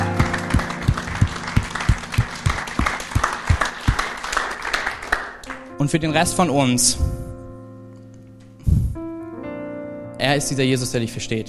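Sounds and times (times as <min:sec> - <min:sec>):
audience applause: 0:00.0 - 0:05.6
speech: 0:05.8 - 0:07.1, 0:10.3 - 0:11.4.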